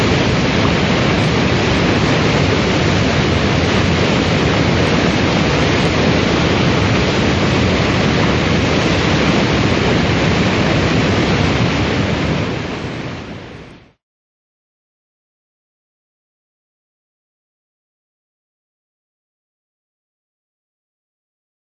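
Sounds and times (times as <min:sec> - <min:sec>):
waterfall: 0:00.0 - 0:14.0.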